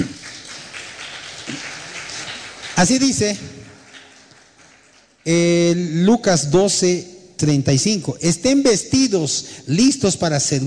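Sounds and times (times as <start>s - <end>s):
church congregation applauding during a Spanish-language sermon: 0.0s - 5.8s
speech: 2.8s - 3.6s, 5.3s - 10.6s.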